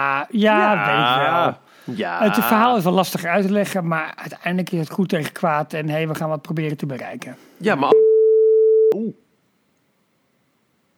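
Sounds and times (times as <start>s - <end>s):
speech: 0.0s - 8.1s, 8.9s - 9.2s
censor beep over cut spoiler: 7.9s - 9.1s.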